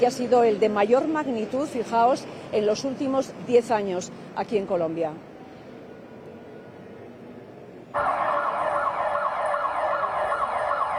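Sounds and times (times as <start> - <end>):
speech: 0.0 - 5.3, 7.9 - 8.1
earthquake warning alarm blaring: 8.0 - 10.9.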